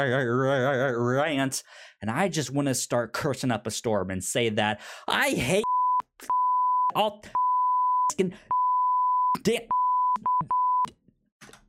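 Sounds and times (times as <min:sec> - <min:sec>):
speech: 0:00.0 - 0:05.6, 0:06.9 - 0:07.4, 0:08.1 - 0:08.5, 0:09.4 - 0:10.3
censor beep over swearing: 0:05.6 - 0:10.9.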